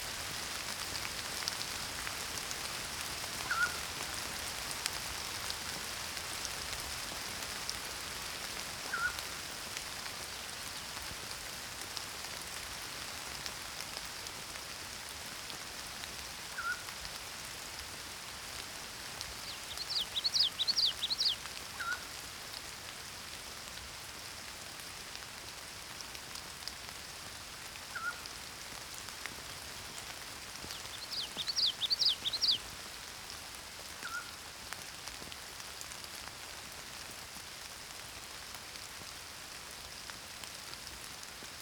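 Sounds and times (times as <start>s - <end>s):
rain: 0.0s - 41.6s
pygmy owl calling: 3.5s - 3.8s, 8.9s - 9.2s, 16.6s - 16.8s, 19.7s - 22.0s, 27.9s - 28.2s
morning songbirds singing: 19.3s - 22.0s, 30.6s - 32.7s.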